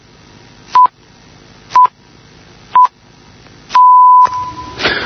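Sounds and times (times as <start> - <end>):
interval signal: 0.7 - 1.0, 1.7 - 1.9, 3.7 - 4.8.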